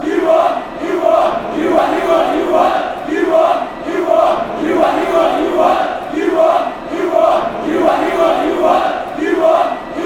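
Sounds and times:
football fans chanting: 0.0s - 10.0s.

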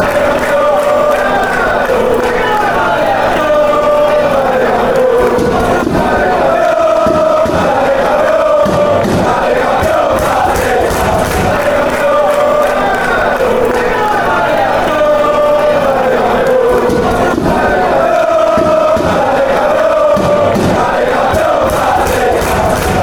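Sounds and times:
crowd chanting: 0.0s - 23.0s.

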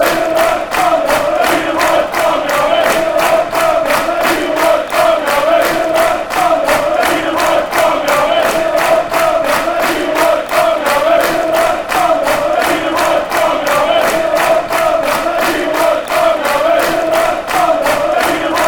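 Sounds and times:
football fans chanting: 0.0s - 18.6s.

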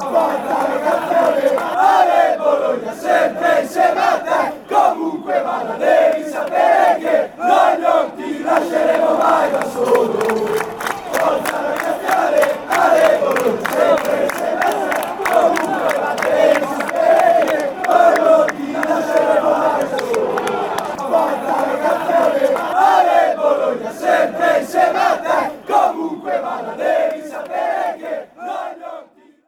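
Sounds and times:
fans chanting: 0.0s - 29.4s.

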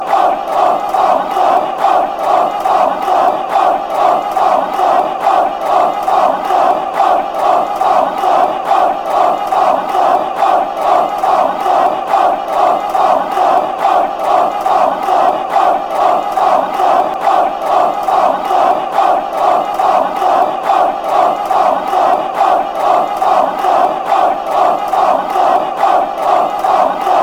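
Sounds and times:
people chanting: 0.0s - 27.2s.

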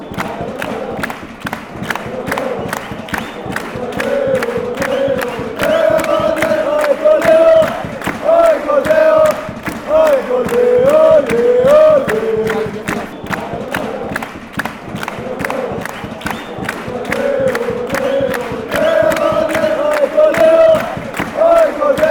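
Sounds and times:
football crowd chanting: 0.0s - 22.0s.

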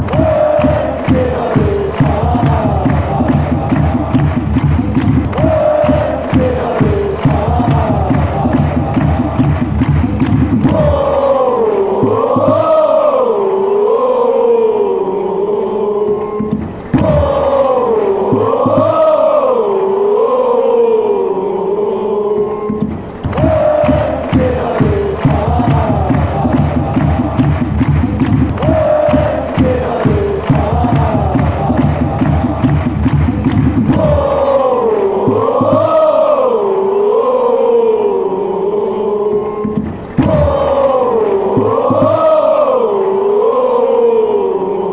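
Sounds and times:
fans chanting woah shalalala: 0.0s - 44.9s.

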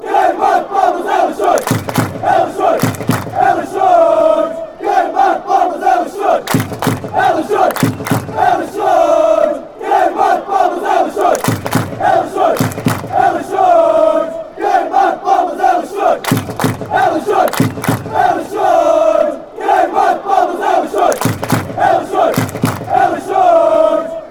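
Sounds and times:
crowd singing football songs and soccer chants: 0.0s - 24.2s
clapping: 1.4s - 2.2s, 2.8s - 3.4s, 6.4s - 8.4s, 11.2s - 13.2s, 16.2s - 18.2s, 20.9s - 22.9s.

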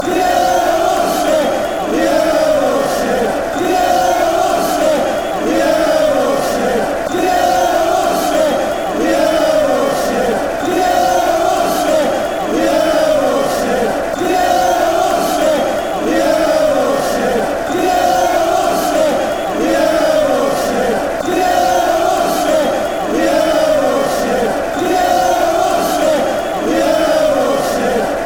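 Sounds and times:
fans chanting: 0.0s - 28.2s.

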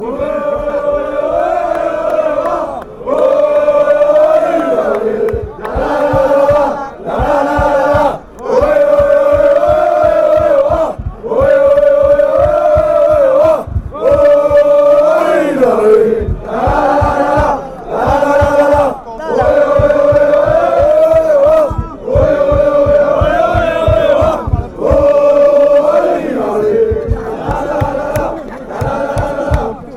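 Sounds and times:
football fans chanting: 0.0s - 29.9s.

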